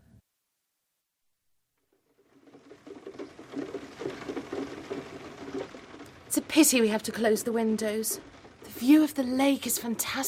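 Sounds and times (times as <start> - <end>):
heavy rain: 2.0 - 10.2
speech: 6.4 - 10.2.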